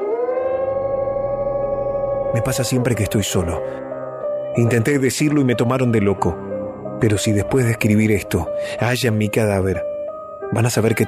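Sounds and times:
sinister howl: 0.0 - 3.7
speech: 2.3 - 3.9, 4.5 - 9.9, 10.5 - 11.0.

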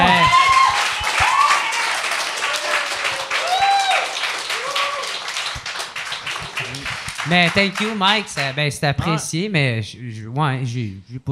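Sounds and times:
voices calling out and whooping: 0.0 - 5.2
applause: 0.0 - 8.6
speech: 7.3 - 11.3.

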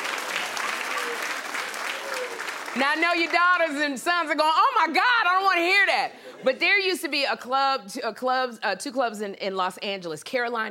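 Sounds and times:
audience clapping: 0.0 - 4.0
speech: 2.8 - 10.6.

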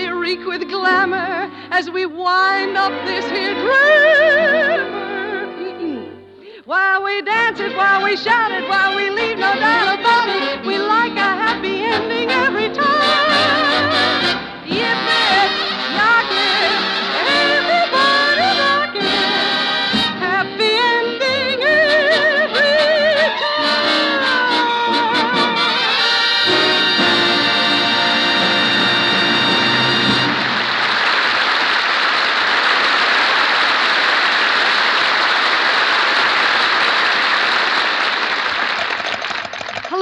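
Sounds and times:
song with singing and orchestra: 0.0 - 30.7
speech: 0.3 - 5.0, 6.7 - 15.6
audience clapping: 29.2 - 39.9.

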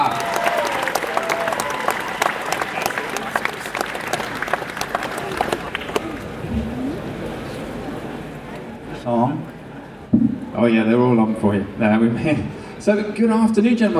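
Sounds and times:
cheers: 0.0 - 6.2
audience applause: 0.0 - 7.0
speech: 10.7 - 13.9.

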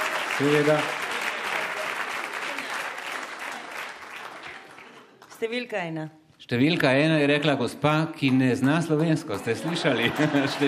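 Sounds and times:
crowd applauding: 0.0 - 5.5, 8.2 - 10.6
speech: 0.4 - 1.0, 5.4 - 10.6
laughter: 9.4 - 10.6.

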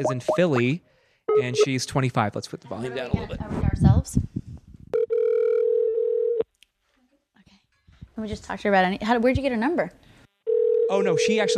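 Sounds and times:
speech: 0.0 - 4.4, 8.2 - 10.1, 10.9 - 11.5
telephone dialing out to a call-in listener: 5.0 - 6.4.

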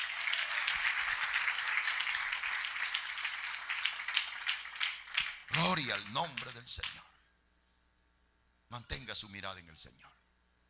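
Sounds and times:
audience applause: 0.0 - 6.6
speech: 5.8 - 7.1, 8.7 - 10.2.

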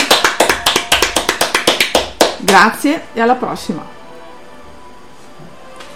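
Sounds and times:
audience applause: 0.0 - 2.3
speech: 2.4 - 4.0.

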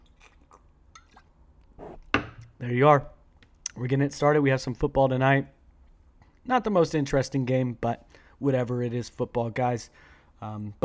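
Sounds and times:
person sipping beer: 0.0 - 2.1
speech: 2.6 - 3.2, 3.8 - 5.6, 6.4 - 10.8.

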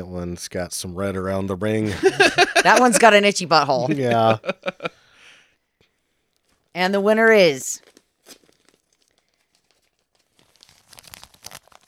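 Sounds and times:
speech: 0.0 - 5.0, 6.8 - 8.4
laughter: 1.8 - 5.0
hermetically sealed paper envelope torn open: 7.8 - 11.8.

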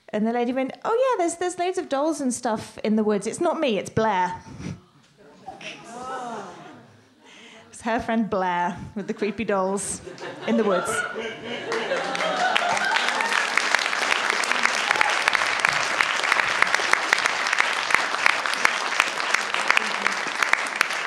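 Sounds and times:
speech: 0.1 - 4.8, 7.8 - 11.8
laughter: 5.2 - 7.7, 9.0 - 17.2, 19.4 - 20.8
audience applause: 11.6 - 21.0.

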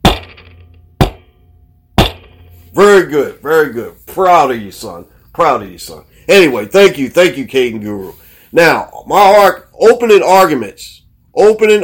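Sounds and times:
gavel bang: 0.0 - 2.6
speech: 2.7 - 11.8.

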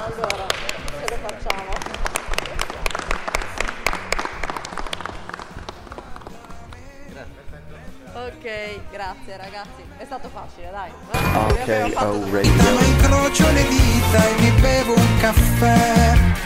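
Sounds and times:
live audience applause: 0.0 - 6.6
speech: 8.4 - 16.4.

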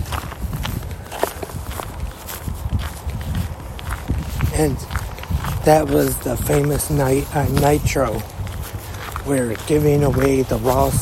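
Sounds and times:
footsteps crunching in snow: 0.0 - 11.0
speech: 4.6 - 5.0, 5.6 - 8.3, 9.3 - 11.0.

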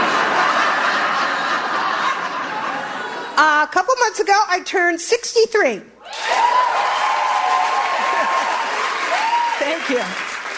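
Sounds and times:
laughter: 0.0 - 3.4, 7.8 - 8.8
speech: 3.7 - 6.4, 9.9 - 10.3
audience cheering at a comedy show: 6.0 - 10.5
audience clapping at a comedy show: 6.1 - 10.5.

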